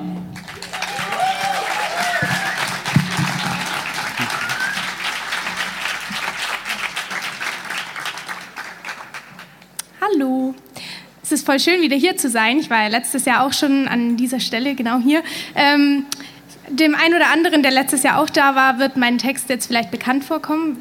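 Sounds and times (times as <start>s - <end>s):
audience applause: 0.3s - 9.6s
speech: 11.4s - 16.2s, 16.8s - 20.7s.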